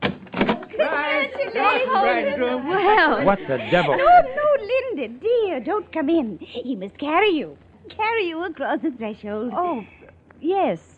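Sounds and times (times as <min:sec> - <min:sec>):
apartment door opening clunks in a radio drama: 0:00.0 - 0:00.7
laughter: 0:00.6 - 0:04.8
speech: 0:00.8 - 0:10.9.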